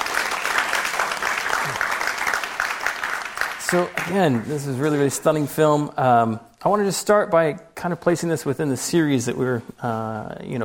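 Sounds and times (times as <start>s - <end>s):
audience applause: 0.0s - 4.6s
speech: 3.7s - 10.6s.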